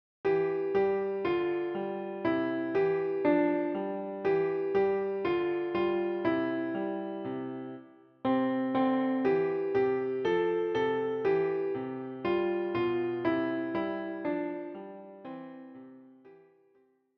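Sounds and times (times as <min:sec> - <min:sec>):
piano: 0:00.2 - 0:16.6.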